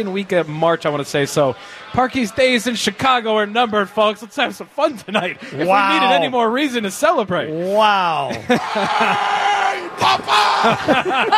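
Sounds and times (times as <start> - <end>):
crowd cheering in concourse: 0.0 - 6.4, 8.1 - 11.3
speech: 0.0 - 11.3
laughter: 4.9 - 6.3, 8.2 - 11.3
crowd applause in concourse: 8.5 - 11.3.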